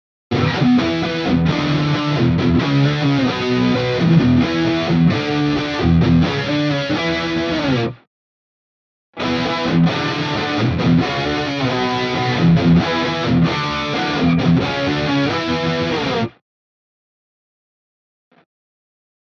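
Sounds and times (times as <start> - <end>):
guitar rhythm riff in all positions: 0.3 - 8.0, 9.2 - 16.4.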